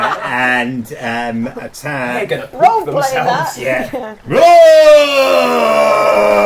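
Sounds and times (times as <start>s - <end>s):
speech: 0.6s - 6.4s
person bellowing imitating a mighty roar: 4.3s - 6.4s.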